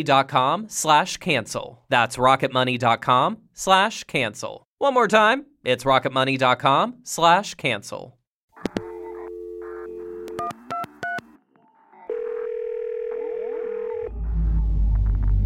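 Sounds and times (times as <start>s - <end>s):
speech: 0.0s - 8.8s
telephone dial tone hum: 8.6s - 11.3s, 12.1s - 14.1s
telephone keypad beeps: 8.7s - 11.2s
low rumble: 14.1s - 15.4s.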